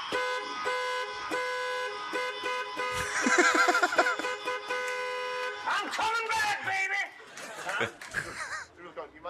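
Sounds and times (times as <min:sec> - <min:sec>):
UPS delivery vehicle horn honks: 0:00.0 - 0:06.0
laughter: 0:03.0 - 0:04.5, 0:07.2 - 0:08.8.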